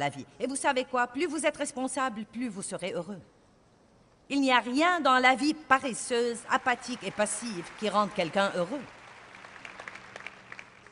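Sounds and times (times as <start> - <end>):
speech: 0.0 - 3.4, 4.3 - 9.0
weak audience applause: 6.9 - 10.8.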